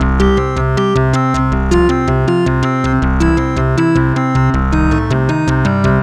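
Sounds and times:
synth bass loops: 0:00.0 - 0:06.0.

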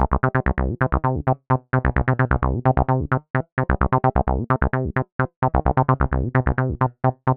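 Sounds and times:
trance bass loop in C: 0:00.0 - 0:07.3.

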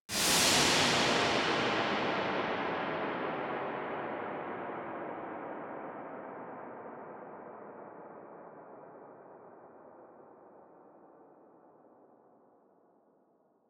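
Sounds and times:
reverberant noise decays: 0:00.1 - 0:05.9.

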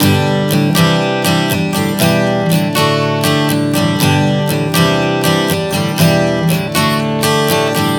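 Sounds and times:
acoustic guitar chord progressions: 0:00.0 - 0:07.9.

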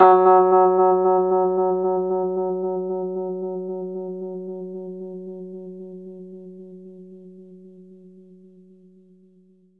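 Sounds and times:
Rhodes electric piano playing fast in F-sharp: 0:00.0 - 0:04.7.

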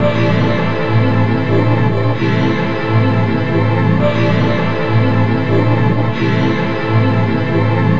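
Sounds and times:
orchestra drone: 0:00.0 - 0:07.9.

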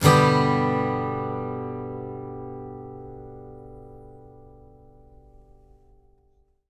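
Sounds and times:
acoustic guitar in G major: 0:00.0 - 0:06.4.

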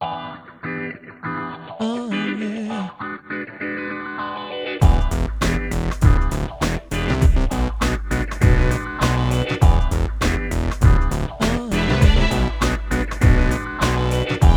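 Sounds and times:
hip hop beat at 100 BPM: 0:04.8 - 0:14.5.

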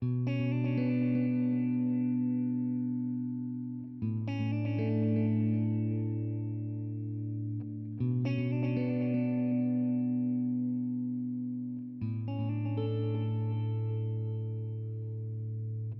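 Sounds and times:
guitar loop with chords and melodies in B minor at 120 BPM: 0:00.0 - 0:15.9.

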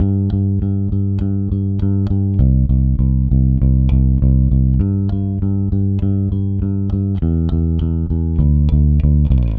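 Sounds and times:
rock bass guitar: 0:00.0 - 0:09.5.

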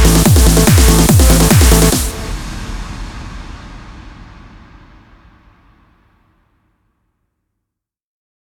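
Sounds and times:
drum kit complete mix: 0:00.0 - 0:04.2.

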